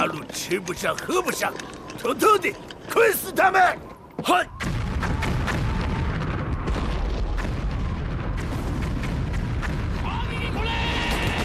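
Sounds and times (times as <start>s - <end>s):
speech: 0.0s - 4.7s
cannon artillery fire in a wartime audio drama: 4.6s - 11.4s.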